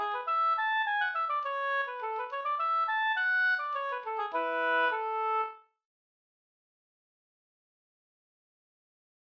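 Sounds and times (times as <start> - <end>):
Swedish polska folk tune: 0.0 - 5.7.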